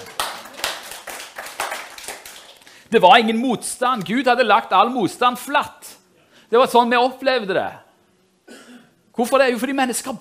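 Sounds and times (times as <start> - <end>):
audience clapping: 0.0 - 2.9
speech: 2.9 - 5.9, 6.5 - 7.8, 9.2 - 10.2.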